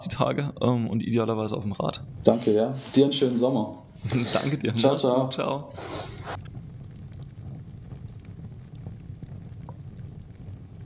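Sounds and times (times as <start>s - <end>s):
speech: 0.2s - 6.5s
crackling campfire: 2.0s - 5.0s, 5.7s - 10.8s
laughter: 4.0s - 5.0s.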